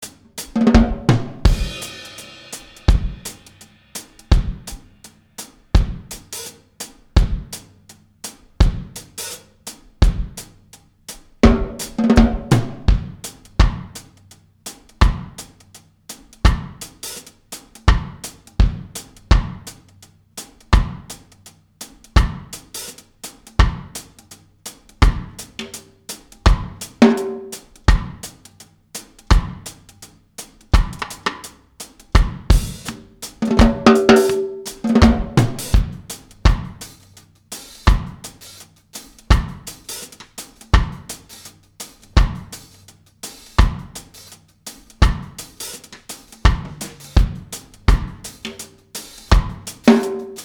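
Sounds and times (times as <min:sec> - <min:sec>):
drums: 0:00.0 - 0:50.4.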